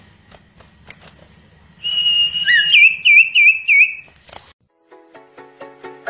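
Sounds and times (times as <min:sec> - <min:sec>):
bird song of long and slurred whistles: 0:01.8 - 0:04.2.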